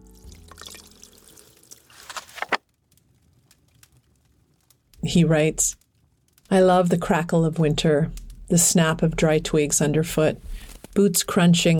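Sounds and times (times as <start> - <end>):
coffee being poured into a cup: 0.3 - 2.1
speech: 5.0 - 5.8, 6.5 - 11.7.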